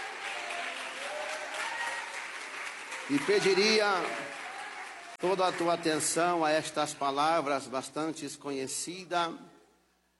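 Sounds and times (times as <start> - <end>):
audience clapping: 0.0 - 7.3
speech: 3.1 - 4.4, 5.2 - 9.5.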